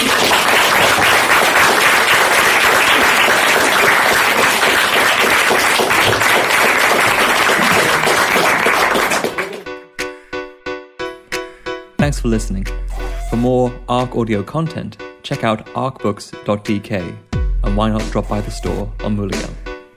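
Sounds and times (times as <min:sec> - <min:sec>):
audience applause: 0:00.0 - 0:09.7
speech: 0:12.2 - 0:19.6.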